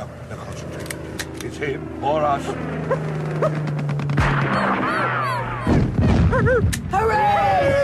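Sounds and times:
aircraft engine drone: 0:00.0 - 0:07.2
speech: 0:01.6 - 0:03.8
whining warbling tone: 0:02.4 - 0:06.2
rifle shots fired at attacking plane: 0:03.4 - 0:06.3.

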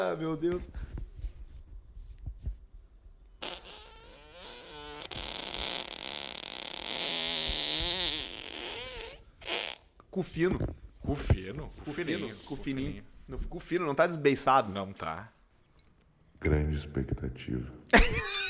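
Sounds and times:
speech: 0:00.0 - 0:00.9, 0:10.2 - 0:15.4, 0:16.4 - 0:18.3
robotic alien fart sound: 0:03.4 - 0:10.0.

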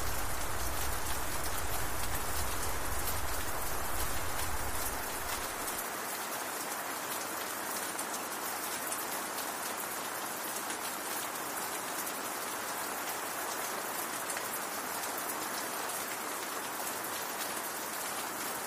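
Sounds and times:
low rumble: 0:00.0 - 0:05.6
rain falling on a castle: 0:00.0 - 0:18.6.

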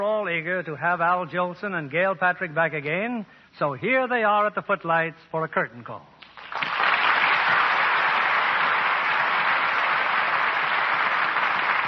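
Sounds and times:
speech: 0:00.0 - 0:06.6
studio audience applause: 0:06.2 - 0:11.8.

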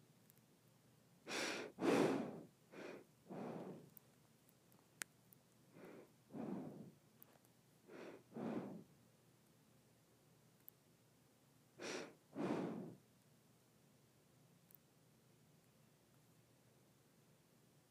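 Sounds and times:
nose breathing: 0:01.3 - 0:04.0, 0:05.8 - 0:07.0, 0:07.9 - 0:08.9, 0:11.8 - 0:13.0.

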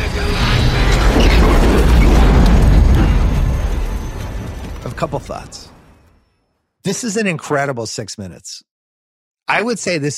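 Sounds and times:
plane crash explosion from film scene: 0:00.0 - 0:06.1
speech: 0:06.8 - 0:08.7, 0:09.5 - 0:10.1.

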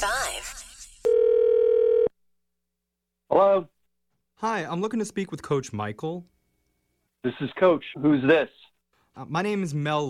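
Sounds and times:
telephone dial tone: 0:01.1 - 0:02.1
speech: 0:04.4 - 0:06.4, 0:07.2 - 0:10.0.

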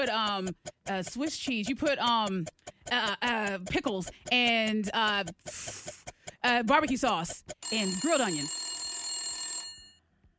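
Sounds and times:
speech: 0:00.0 - 0:08.7
game buzzer: 0:07.6 - 0:09.9.

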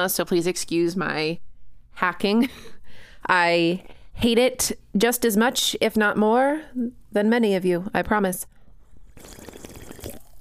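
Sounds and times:
speech: 0:00.0 - 0:08.5, 0:09.2 - 0:09.6
sipping from a can of sparkling water: 0:09.0 - 0:10.3.

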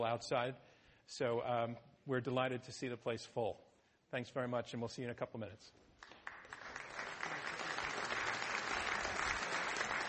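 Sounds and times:
speech: 0:00.0 - 0:05.9
audience applause: 0:06.0 - 0:10.0.

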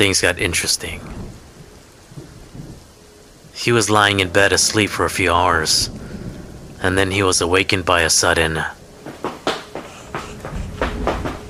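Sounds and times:
speech: 0:00.0 - 0:01.2, 0:03.6 - 0:06.0, 0:06.8 - 0:08.8
little footsteps running on hardwood floors: 0:09.0 - 0:11.4.

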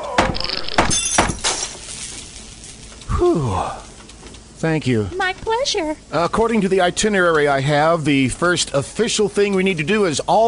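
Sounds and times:
fire axe smashing a tape deck: 0:00.2 - 0:02.0
brittle clattering and tinkling debris: 0:00.4 - 0:02.9
speech: 0:03.2 - 0:03.8, 0:04.6 - 0:10.4.

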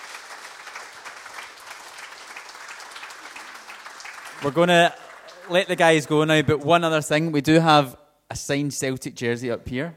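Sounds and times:
round of applause from a crowd: 0:00.0 - 0:06.7
speech: 0:04.4 - 0:09.9.

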